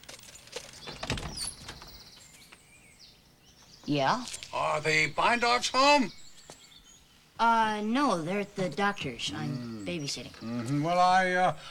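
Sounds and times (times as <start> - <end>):
door being opened: 0.6 - 2.0
speech: 3.9 - 6.2, 7.4 - 11.6.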